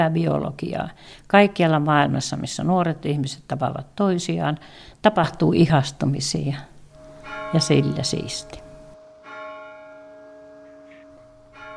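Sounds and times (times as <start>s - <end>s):
speech: 0.0s - 6.7s, 7.5s - 8.6s
church bell struck: 6.9s - 11.7s.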